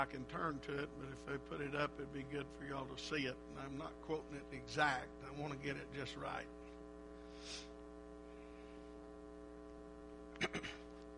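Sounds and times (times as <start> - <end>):
speech: 0.0 - 6.6, 7.4 - 7.7
steady electrical hum: 0.0 - 11.1
phone buzzing on vibrate: 6.5 - 11.1.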